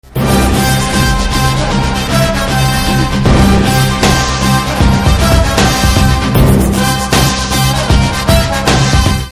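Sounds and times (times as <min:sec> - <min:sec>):
trailer theme ringtone: 0:00.0 - 0:09.3.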